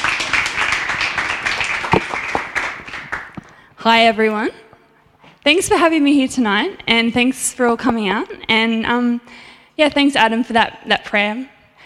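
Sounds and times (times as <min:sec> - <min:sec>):
audience applause: 0:00.0 - 0:03.6
speech: 0:03.8 - 0:04.6, 0:05.4 - 0:11.5.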